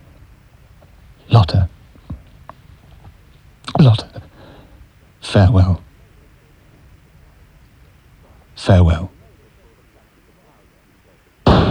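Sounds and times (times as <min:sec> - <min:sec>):
low hush: 0:00.0 - 0:11.6
speech: 0:01.4 - 0:01.7, 0:05.3 - 0:05.8, 0:08.7 - 0:09.1
pistol shot: 0:11.5 - 0:11.6.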